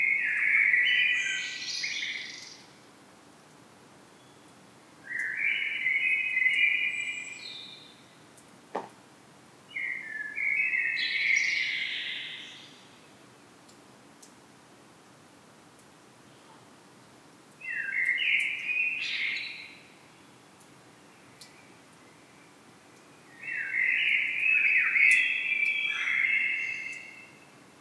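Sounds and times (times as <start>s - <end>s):
common blackbird song: 0.0s - 2.8s, 4.1s - 8.2s, 9.7s - 13.1s, 17.6s - 20.4s, 21.0s - 27.6s.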